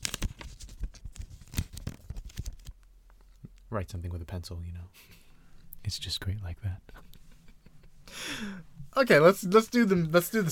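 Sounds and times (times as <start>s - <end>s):
crinkling for ASMR: 0.0s - 3.6s
speech: 3.7s - 5.1s, 5.8s - 7.0s, 8.4s - 10.4s.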